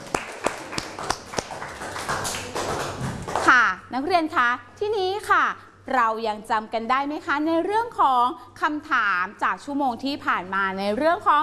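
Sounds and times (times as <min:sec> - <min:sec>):
group of students clapping: 0:00.0 - 0:03.5
speech: 0:04.0 - 0:11.4.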